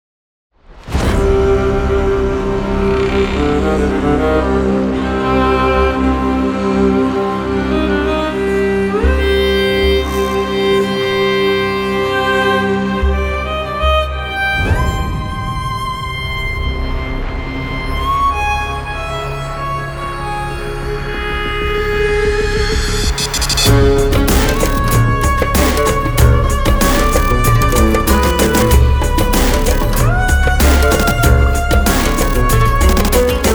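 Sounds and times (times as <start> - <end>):
virtual violas: 1.0 - 33.5.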